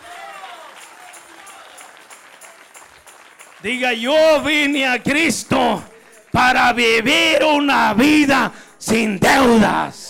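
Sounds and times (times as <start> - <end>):
audience applause: 0.0 - 4.6
speech: 3.6 - 10.0.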